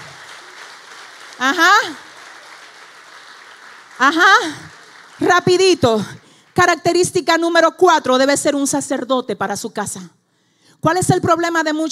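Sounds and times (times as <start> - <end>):
audience applause: 0.0 - 6.6
speech: 1.4 - 2.0, 4.0 - 4.6, 5.2 - 10.2, 10.8 - 11.9.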